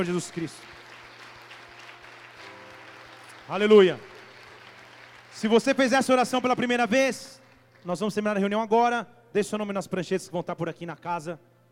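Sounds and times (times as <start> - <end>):
speech: 0.0 - 0.8, 3.5 - 4.1, 5.4 - 11.5
audience applause: 0.0 - 7.8.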